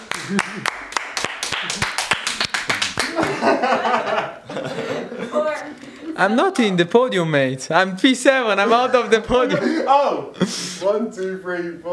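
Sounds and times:
round of applause: 0.0s - 3.4s
speech: 0.3s - 0.9s, 6.2s - 11.9s
laughter: 3.1s - 5.5s, 8.6s - 10.8s.

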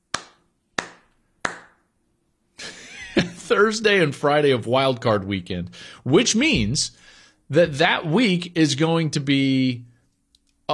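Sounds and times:
slow clap: 0.0s - 1.8s
speech: 3.5s - 9.9s.

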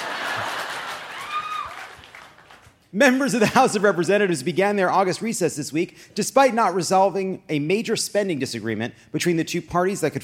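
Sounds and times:
live audience applause: 0.0s - 2.7s
speech: 2.9s - 10.2s.

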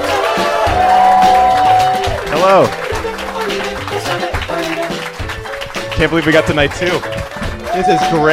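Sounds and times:
crowd cheering and clapping: 0.0s - 8.3s
sustained whoop: 0.1s - 2.2s, 7.7s - 8.3s
speech: 2.4s - 2.8s, 6.0s - 8.3s.

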